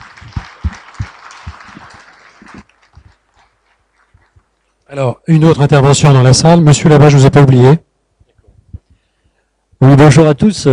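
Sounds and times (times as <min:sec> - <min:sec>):
audience applauding: 0:00.0 - 0:04.6
speech: 0:04.9 - 0:07.9, 0:09.8 - 0:10.7.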